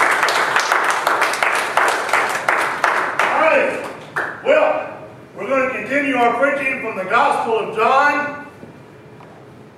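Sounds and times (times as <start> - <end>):
audience applause: 0.0 - 4.4
speech: 6.2 - 8.3.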